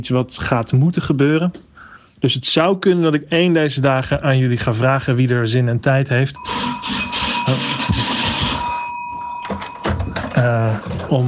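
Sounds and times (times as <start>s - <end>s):
speech: 0.0s - 7.7s, 10.4s - 11.2s
electronic doorbell ringing: 6.4s - 11.2s.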